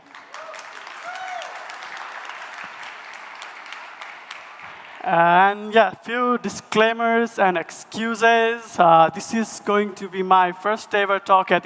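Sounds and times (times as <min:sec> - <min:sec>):
conference audience applause: 0:00.0 - 0:05.0
speech: 0:05.0 - 0:11.6.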